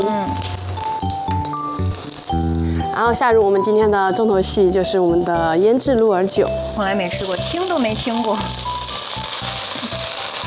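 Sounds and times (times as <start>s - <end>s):
ginger and garlic frying in hot lard in a preheated pan: 0.0s - 10.4s
music: 0.0s - 10.4s
speech: 3.0s - 8.6s.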